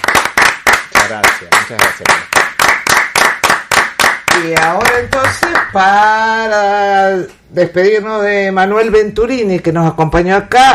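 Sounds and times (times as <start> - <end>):
applause for departing guest: 0.0 - 5.8
speech: 1.1 - 2.3, 4.4 - 10.7.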